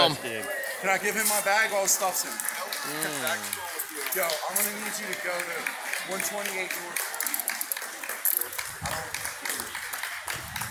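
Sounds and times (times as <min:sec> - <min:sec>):
speech: 0:00.0 - 0:07.2
crowd noise and voices: 0:00.0 - 0:10.7
group of people clapping: 0:00.9 - 0:10.7.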